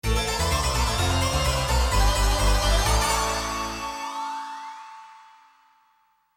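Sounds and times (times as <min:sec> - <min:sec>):
game over jingle: 0:00.1 - 0:04.2.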